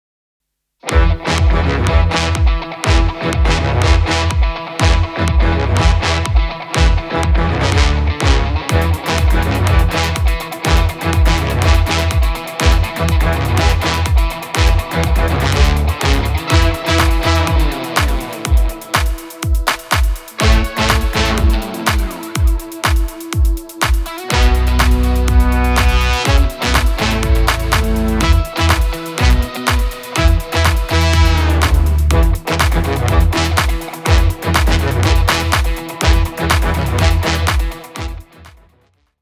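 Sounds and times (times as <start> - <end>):
backing track: 0.9 - 38.6.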